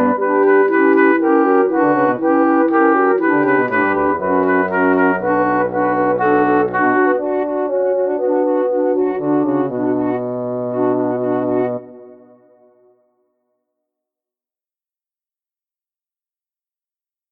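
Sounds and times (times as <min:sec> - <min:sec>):
woodwind: 0:00.0 - 0:13.1.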